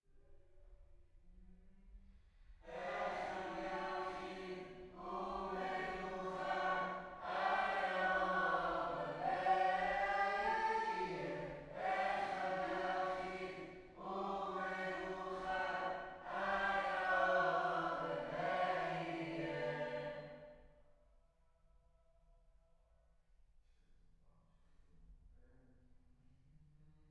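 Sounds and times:
choir singing: 2.7s - 20.5s.

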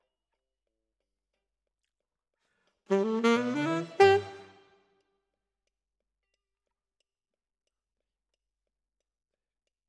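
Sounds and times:
piano music: 2.9s - 4.5s.

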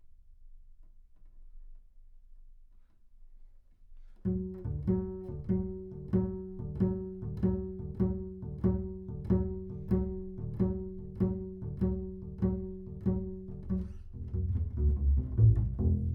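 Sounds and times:
bass sound: 4.3s - 16.1s.

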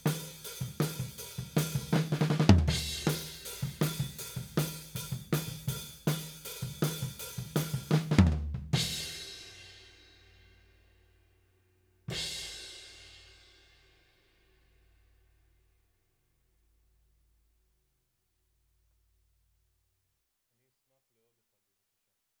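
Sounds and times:
tom drum beat: 0.0s - 9.4s.

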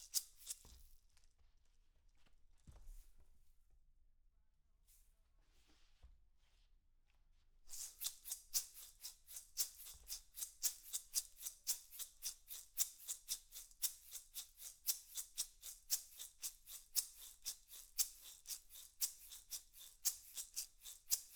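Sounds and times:
percussion recorded with overhead microphones: 0.0s - 1.0s, 7.7s - 21.3s.

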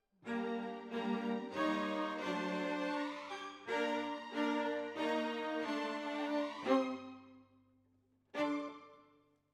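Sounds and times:
violas: 0.2s - 7.4s.

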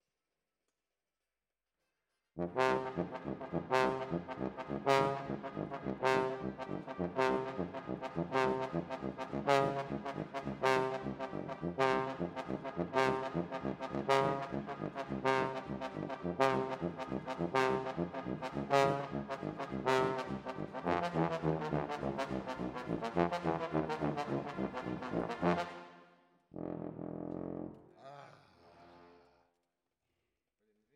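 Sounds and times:
trombone: 2.4s - 26.0s, 26.6s - 27.8s.

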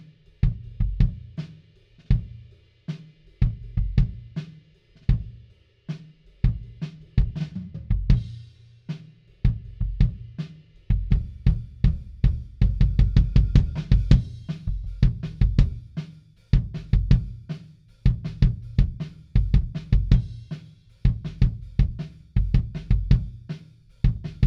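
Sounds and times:
kick drum: 0.4s - 1.3s, 6.4s - 8.4s, 9.5s - 10.3s, 10.9s - 16.0s, 16.6s - 24.4s.

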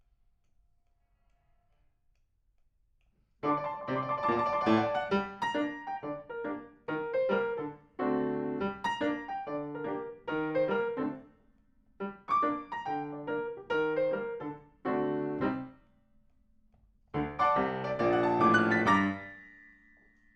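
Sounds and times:
piano: 3.4s - 11.3s, 12.0s - 15.8s, 17.1s - 20.3s.

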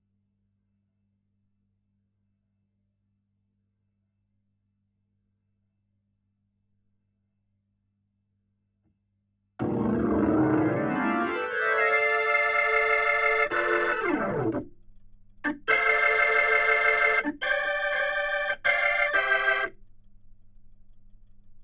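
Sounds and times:
Hammond organ: 9.6s - 14.7s, 15.4s - 19.7s.

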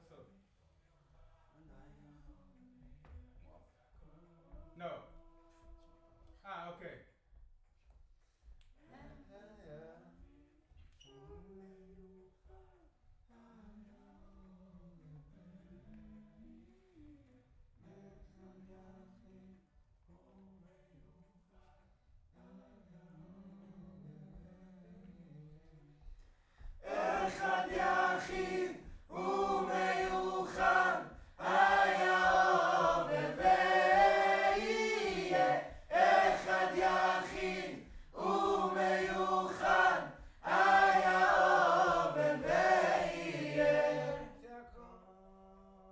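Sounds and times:
distant choir: 26.8s - 44.4s.

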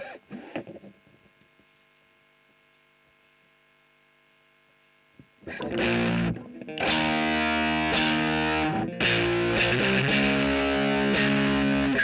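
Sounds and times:
electric guitar recorded with a Royer microphone: 5.2s - 12.0s.

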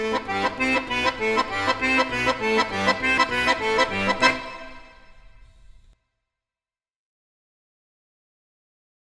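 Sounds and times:
accordion: 0.0s - 5.9s.

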